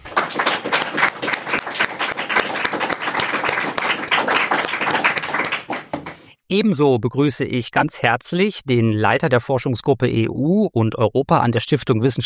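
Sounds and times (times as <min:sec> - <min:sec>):
audience applause: 0:00.0 - 0:06.3
speech: 0:06.5 - 0:12.2.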